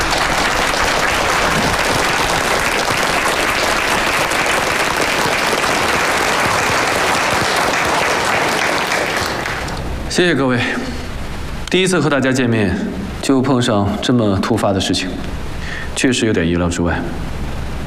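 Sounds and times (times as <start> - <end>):
audience applause: 0.0 - 10.0
speech: 10.2 - 10.9, 11.7 - 15.4, 16.0 - 17.4.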